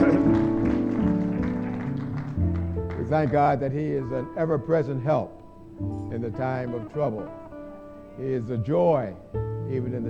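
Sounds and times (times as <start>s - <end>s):
audience hand clapping: 0.0s - 3.6s
speech: 3.1s - 7.4s, 8.2s - 10.0s.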